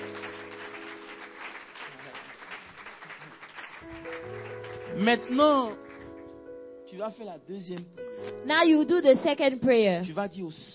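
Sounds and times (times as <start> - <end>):
audience clapping: 0.0 - 6.3
speech: 5.0 - 5.8, 6.9 - 10.7.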